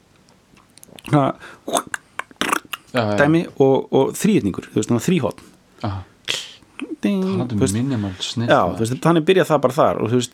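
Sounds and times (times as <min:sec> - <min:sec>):
voice imitating a guiro with mouth clicks: 0:00.9 - 0:03.0
speech: 0:01.1 - 0:01.9, 0:02.9 - 0:06.1, 0:07.0 - 0:10.3.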